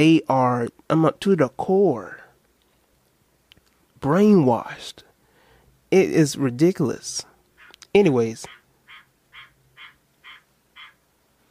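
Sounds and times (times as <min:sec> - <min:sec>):
speech: 0:00.0 - 0:02.2, 0:04.0 - 0:05.1, 0:05.9 - 0:07.3, 0:07.9 - 0:08.6
low hum: 0:00.0 - 0:11.5
frog croaking outside a window in the countryside: 0:07.6 - 0:11.0.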